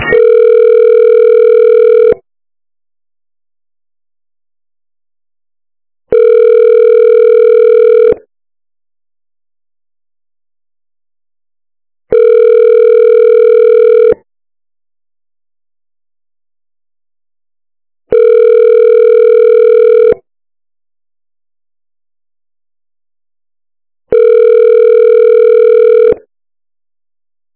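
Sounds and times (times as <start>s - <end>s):
telephone ringback tones while a call is transferred: 0.1s - 2.2s, 6.1s - 8.2s, 12.1s - 14.2s, 18.1s - 20.2s, 24.1s - 26.3s.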